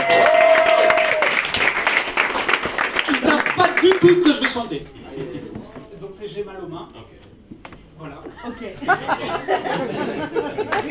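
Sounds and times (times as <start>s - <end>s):
audience applauding accordion players: 0.0s - 4.8s
speech: 4.0s - 5.6s, 6.2s - 7.3s, 8.0s - 10.9s
laughter: 8.3s - 10.9s.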